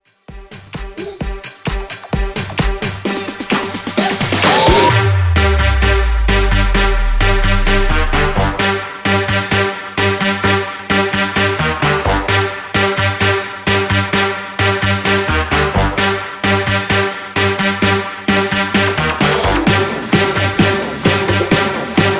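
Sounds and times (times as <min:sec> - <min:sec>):
booty bounce mashup dance music: 0:00.3 - 0:22.1.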